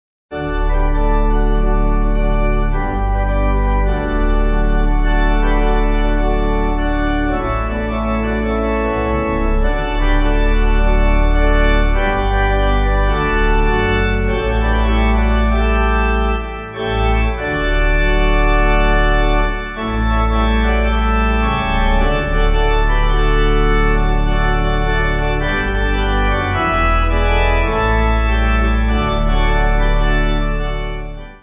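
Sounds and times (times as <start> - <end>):
pipe organ playing a hymn: 0.3 - 31.4.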